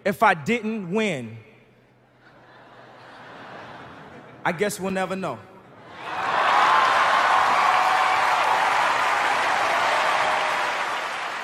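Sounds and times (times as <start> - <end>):
speech: 0.0 - 1.5, 4.4 - 6.2
laughter: 2.2 - 4.4
audience standing ovation applause: 6.0 - 11.4.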